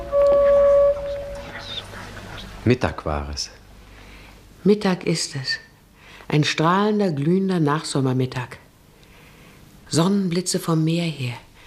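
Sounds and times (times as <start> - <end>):
distant vehicle horn honking: 0.0 - 1.6
low hum: 0.0 - 11.6
speech: 2.6 - 3.6, 4.6 - 5.7, 6.3 - 8.6, 9.9 - 11.4.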